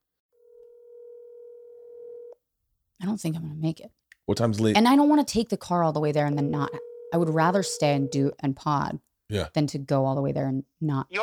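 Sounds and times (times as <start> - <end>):
telephone tone while placing a call: 0.4 - 2.4, 6.4 - 8.3
speech: 3.0 - 11.2.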